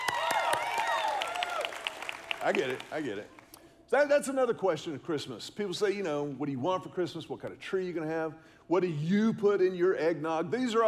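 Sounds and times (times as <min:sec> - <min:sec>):
cheering and whooping voices: 0:00.0 - 0:02.0
crowd clapping: 0:00.0 - 0:03.5
speech: 0:02.4 - 0:10.8.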